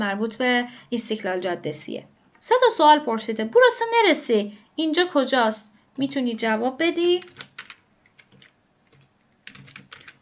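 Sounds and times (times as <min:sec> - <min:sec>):
speech: 0:00.0 - 0:07.5
typing on a computer keyboard: 0:07.0 - 0:10.2.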